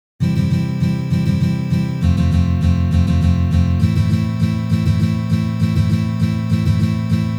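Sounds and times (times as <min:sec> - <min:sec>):
waltz rhythm strumming on guitar: 0:00.2 - 0:07.3.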